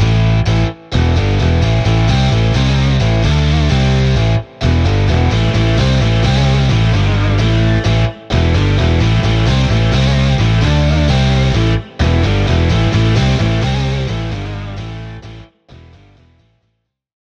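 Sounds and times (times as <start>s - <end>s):
rock music without drums: 0.0s - 16.3s.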